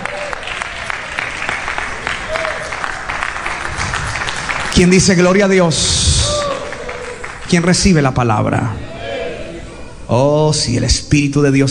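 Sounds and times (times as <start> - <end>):
audience applauding loudly: 0.0 - 8.2
speech: 4.8 - 6.2, 7.5 - 8.9, 10.1 - 11.6.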